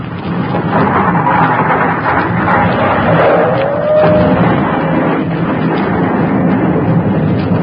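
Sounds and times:
loud continuous rumbling roar of a volcanic eruption: 0.0s - 7.6s
booming explosion: 0.3s - 7.6s
brief whistling tone: 2.8s - 4.4s.

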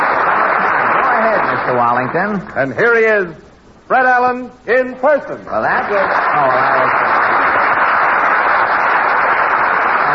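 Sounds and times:
studio audience applause: 0.0s - 2.4s, 5.6s - 10.1s
speech: 1.7s - 7.2s.

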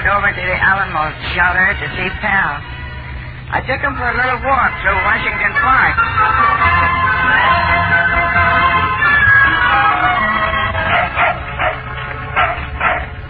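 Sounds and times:
speech: 0.1s - 2.8s, 3.5s - 9.0s
old hound dog whimpering: 7.2s - 13.2s
old hound dog barking: 10.8s - 13.2s.

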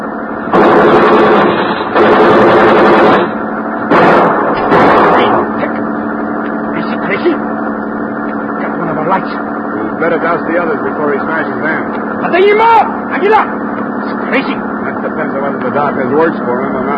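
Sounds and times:
harsh roar: 0.0s - 16.9s
rapid gunfire: 0.5s - 5.5s
speech: 16.0s - 16.8s.

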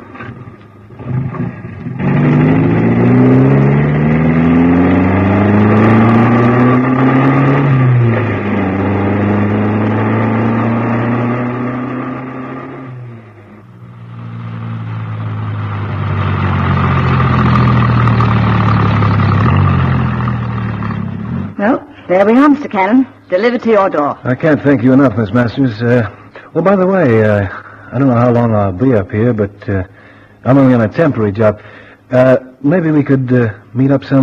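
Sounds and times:
car engine pulling away through gear changes: 0.0s - 21.6s
speech: 22.2s - 34.2s.

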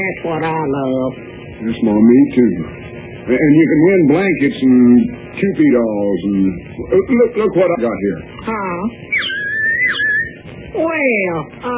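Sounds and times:
speech: 0.0s - 9.2s, 10.8s - 11.7s
special whistle imitating birds: 9.1s - 10.4s.

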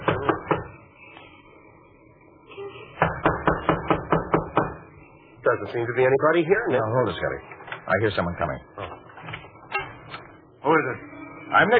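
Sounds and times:
knuckles knocking on a door: 3.0s - 4.8s
speech: 5.5s - 8.8s, 10.7s - 11.7s.

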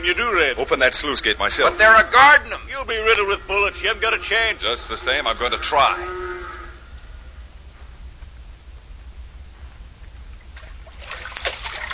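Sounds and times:
speech: 0.0s - 6.2s
water splashes of someone swimming across an impounded lake: 10.6s - 11.9s.

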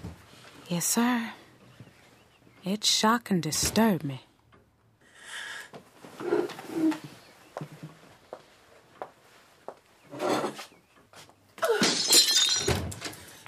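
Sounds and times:
speech: 0.7s - 1.4s, 2.7s - 4.3s
glass vase knocked over and shattering: 11.6s - 12.9s.

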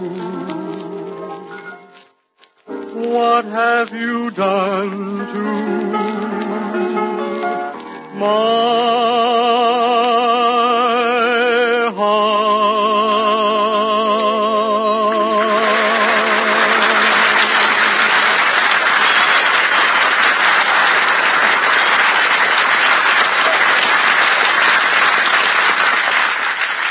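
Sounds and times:
speech: 0.0s - 0.6s, 3.1s - 7.2s, 8.2s - 10.1s
music: 0.0s - 18.4s
audience applause: 15.0s - 26.9s.

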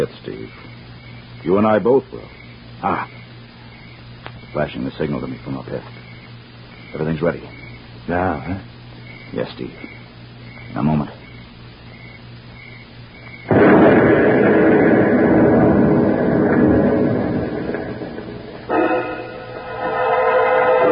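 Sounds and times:
speech: 0.0s - 0.8s, 1.4s - 3.2s, 4.5s - 6.0s, 6.9s - 8.7s, 9.3s - 10.0s, 10.7s - 11.2s
truck exploding: 13.5s - 20.8s.

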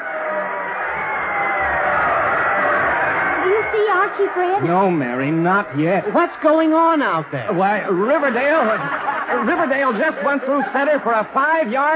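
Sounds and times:
football stadium crowd cheering: 0.0s - 11.9s
laughter: 2.6s - 11.9s
speech: 4.1s - 11.9s.

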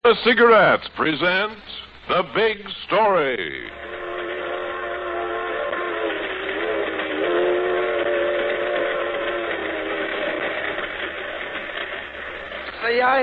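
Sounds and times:
rolling freight train rumbling and clattering: 0.0s - 13.2s
speech: 0.1s - 4.0s, 12.8s - 13.2s
steam train whistle: 3.7s - 11.7s.

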